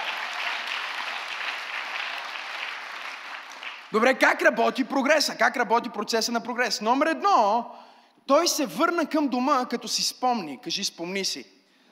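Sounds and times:
audience applause: 0.0s - 3.9s
speech: 3.9s - 11.6s.

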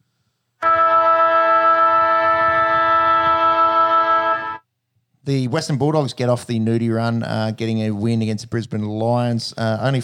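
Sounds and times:
sports ground end-of-game siren blaring: 0.6s - 4.6s
speech: 5.3s - 10.0s.

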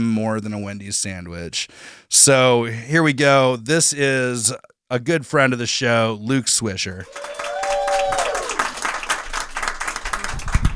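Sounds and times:
speech: 0.0s - 7.4s
audience applause at a stand-up comedy show: 7.0s - 10.7s.

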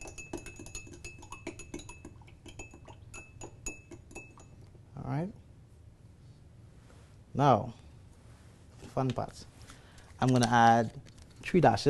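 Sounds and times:
spoon clinking against glass stirring rum punch with sugar syrup: 0.0s - 4.7s
speech: 5.0s - 5.4s, 7.4s - 7.8s, 9.0s - 9.5s, 10.2s - 11.8s.

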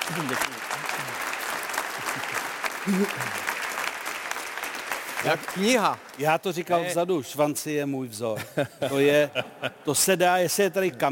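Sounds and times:
applause: 0.0s - 7.0s
speech: 0.1s - 0.9s, 2.8s - 3.5s, 5.2s - 11.0s
laughter: 1.8s - 3.5s, 8.3s - 10.1s.

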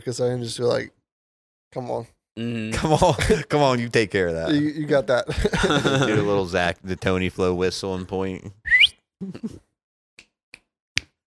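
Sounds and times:
speech: 0.0s - 1.0s, 1.7s - 8.6s, 9.2s - 9.7s
laughter: 2.8s - 3.5s, 5.2s - 6.6s
finger snap: 10.2s - 11.2s.

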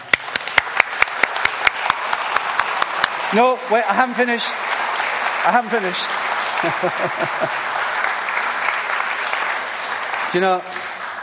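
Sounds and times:
audience clapping: 0.0s - 11.2s
crowd noise: 0.0s - 11.2s
speech: 3.3s - 4.7s, 5.4s - 7.6s, 10.3s - 10.8s
laughter: 6.4s - 7.8s.

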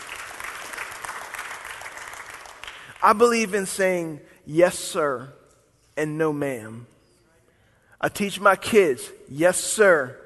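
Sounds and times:
audience applause: 0.0s - 2.9s
speech: 3.0s - 5.4s, 6.0s - 7.0s, 8.0s - 10.2s.

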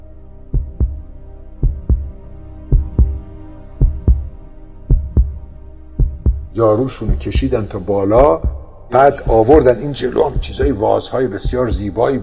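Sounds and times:
pounding heartbeat: 0.6s - 1.0s, 1.6s - 7.6s, 8.2s - 10.8s, 11.4s - 12.0s
speech: 6.6s - 12.2s.

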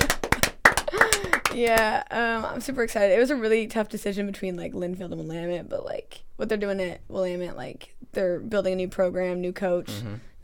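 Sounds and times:
hand clapping: 0.0s - 1.9s
speech: 1.6s - 10.4s.

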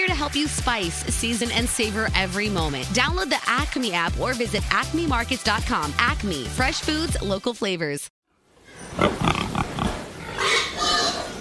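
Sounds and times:
speech: 0.2s - 8.1s
market-ready hogs grunting in a barn on a hog farm: 8.8s - 11.4s.

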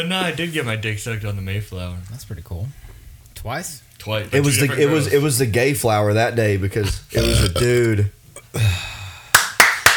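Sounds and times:
speech: 0.0s - 9.0s
hand clapping: 9.3s - 9.9s.

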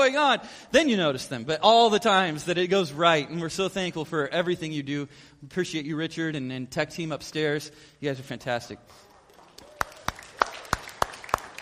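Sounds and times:
speech: 0.0s - 9.0s
audience applause: 9.0s - 11.6s.

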